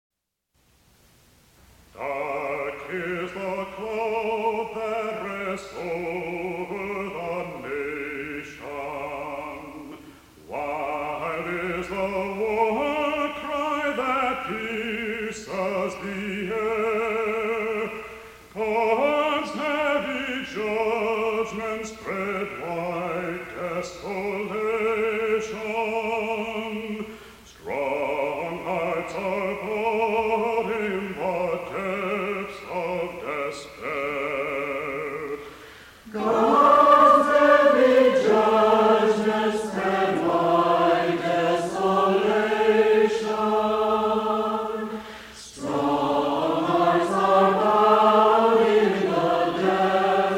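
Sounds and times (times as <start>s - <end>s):
Shaker hymn: 1.8s - 50.3s.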